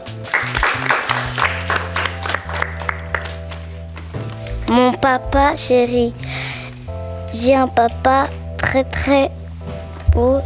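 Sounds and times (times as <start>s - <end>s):
audience applause: 0.3s - 3.6s
speech: 5.0s - 6.5s, 7.3s - 9.4s, 10.2s - 10.4s.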